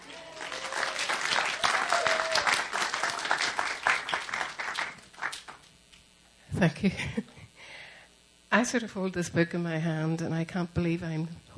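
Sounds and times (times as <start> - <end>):
audience applause welcoming a woman about to read from her book: 0.0 - 5.6
speech: 6.6 - 7.3, 8.6 - 11.5.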